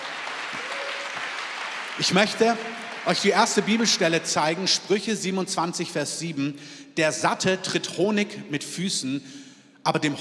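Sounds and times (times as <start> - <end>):
audience applauding: 0.0 - 4.2
speech: 2.0 - 10.1.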